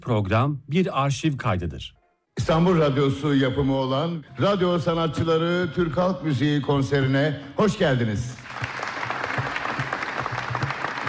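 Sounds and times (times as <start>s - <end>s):
speech: 0.0s - 8.8s
concert audience applause at an Istanbul Radio Turkish folk music concert: 8.4s - 11.0s.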